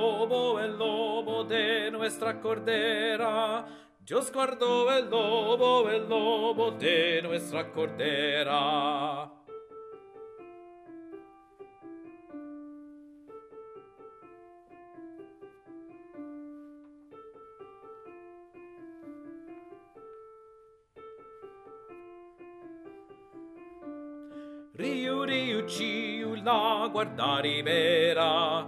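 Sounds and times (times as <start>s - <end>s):
tenor singing: 0.0s - 9.4s, 24.8s - 28.6s.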